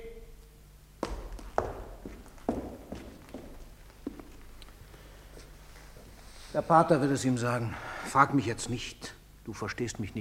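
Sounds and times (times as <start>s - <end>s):
low hum: 0.0s - 10.1s
footsteps of someone walking away: 1.0s - 6.3s
speech: 6.6s - 10.1s.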